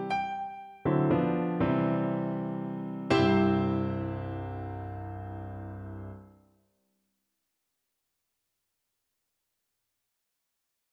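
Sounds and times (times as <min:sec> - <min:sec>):
piano: 0:00.0 - 0:06.4.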